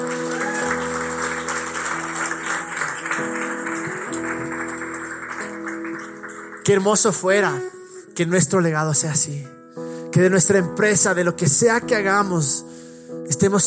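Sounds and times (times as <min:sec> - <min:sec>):
audience applause: 0:00.0 - 0:07.2
speech: 0:06.6 - 0:12.7, 0:13.3 - 0:13.6.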